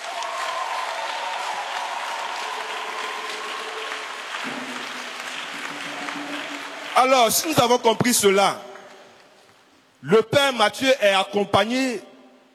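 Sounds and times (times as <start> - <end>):
church congregation applauding in acclaim for Father Mathieu: 0.0 - 9.8
speech: 7.0 - 8.7, 10.0 - 12.1.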